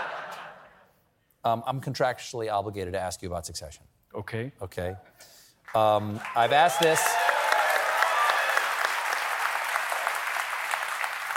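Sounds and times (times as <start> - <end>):
speech: 1.4 - 7.2
studio audience applause: 5.8 - 11.3.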